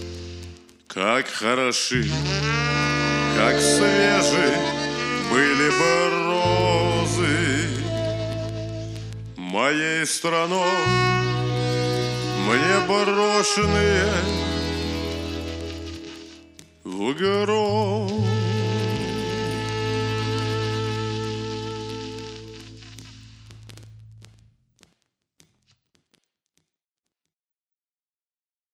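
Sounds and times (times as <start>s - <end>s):
tango music: 0.0s - 0.7s, 2.0s - 23.2s.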